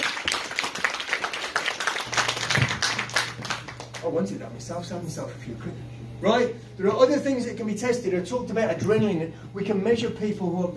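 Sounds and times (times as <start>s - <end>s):
crowd applause: 0.0s - 4.1s
low steady hum: 1.9s - 10.7s
speech: 4.1s - 10.7s.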